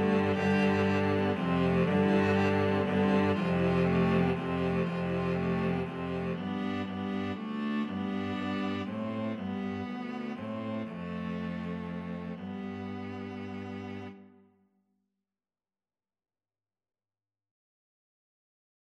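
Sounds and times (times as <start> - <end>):
viola: 0.0 - 14.4
cello: 0.0 - 14.6.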